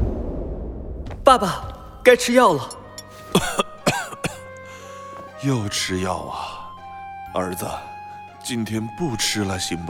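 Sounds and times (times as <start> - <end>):
speech: 1.3 - 3.6, 5.4 - 6.6, 7.4 - 9.8
old man coughing: 3.2 - 4.6.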